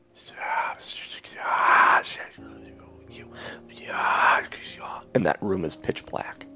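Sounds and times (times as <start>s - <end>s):
overlapping breathy whispers: 0.2s - 5.1s
speech: 5.2s - 6.5s.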